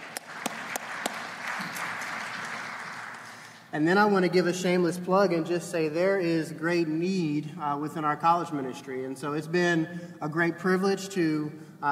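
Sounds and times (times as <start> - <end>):
audience applause: 0.0 - 3.6
speech: 3.7 - 11.9.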